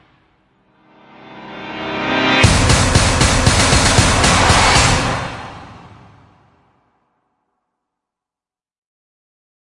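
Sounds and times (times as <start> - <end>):
drums remix: 2.4 - 6.5.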